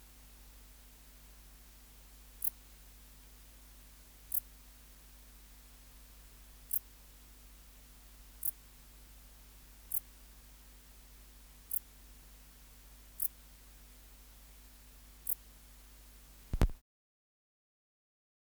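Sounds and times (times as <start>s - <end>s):
dark bush-cricket chirping: 0.1s - 16.6s
click: 16.5s - 16.8s.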